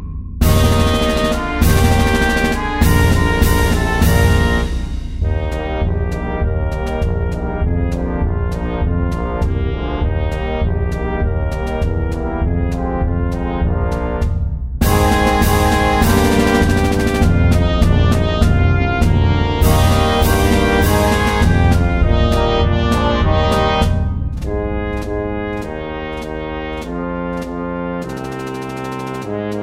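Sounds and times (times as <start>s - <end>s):
march music at 100: 0.4s - 29.6s.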